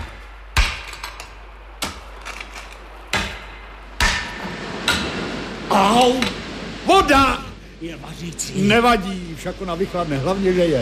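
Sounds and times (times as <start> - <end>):
pickaxe breaking through a wall: 0.0 - 1.2, 3.1 - 5.1
speech: 5.7 - 10.8.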